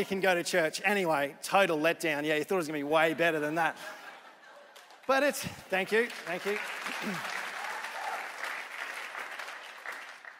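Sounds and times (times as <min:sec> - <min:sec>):
speech: 0:00.0 - 0:04.0, 0:05.1 - 0:07.4
laughter: 0:03.7 - 0:05.7
audience applause: 0:05.0 - 0:10.3.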